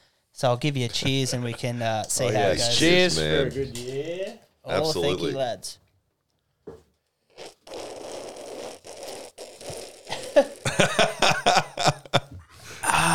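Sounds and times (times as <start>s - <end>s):
speech: 0.4s - 5.8s
beer froth fizzing: 7.4s - 10.7s
laughter: 10.1s - 12.4s.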